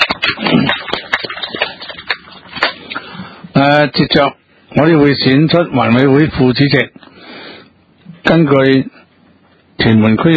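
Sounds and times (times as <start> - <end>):
applause from a small group congratulating elected committee chairman: 0.0 - 2.8
speech: 3.6 - 7.1, 8.2 - 9.0, 9.8 - 10.3.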